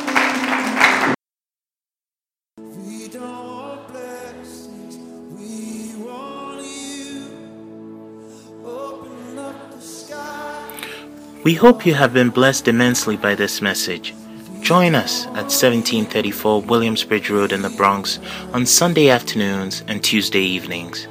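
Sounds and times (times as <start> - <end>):
audience clapping and applause: 0.0 - 1.2
speech: 11.4 - 21.0.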